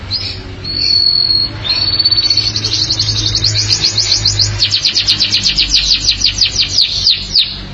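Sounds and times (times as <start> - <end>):
canary rising sweep and long high whistle: 0.1 - 7.6.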